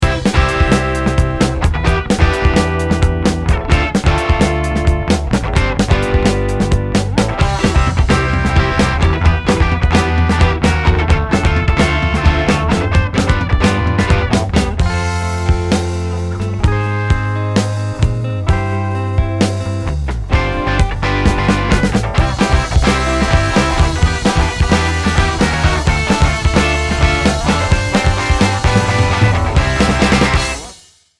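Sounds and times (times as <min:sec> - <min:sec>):
instrumental music: 0:00.0 - 0:30.8.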